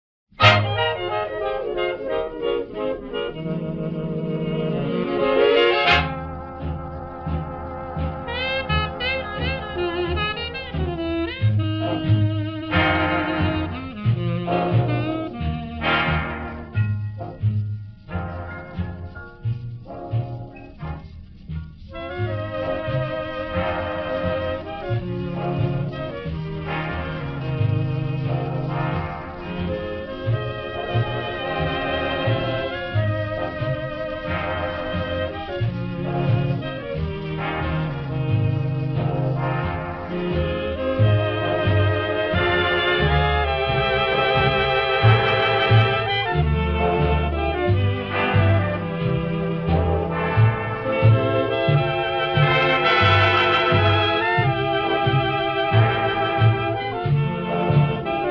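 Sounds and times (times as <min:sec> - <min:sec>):
instrumental music: 0:00.3 - 0:58.2.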